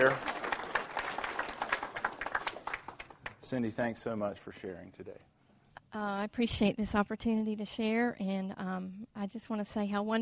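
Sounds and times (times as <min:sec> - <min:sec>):
speech: 0:00.0 - 0:00.3, 0:03.5 - 0:05.3, 0:05.9 - 0:10.2
audience applause welcoming a speaker at a church service: 0:00.0 - 0:03.5.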